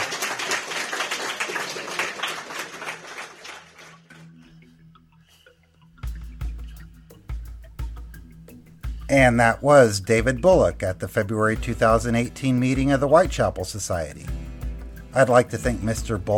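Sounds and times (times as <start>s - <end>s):
audience applause: 0.0s - 4.3s
speech: 9.1s - 14.4s, 15.2s - 16.3s.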